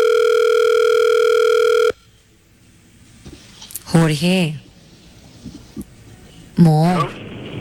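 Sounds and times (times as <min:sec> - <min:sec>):
telephone dial tone: 0:00.0 - 0:02.0
speech: 0:04.0 - 0:04.6, 0:06.6 - 0:07.1.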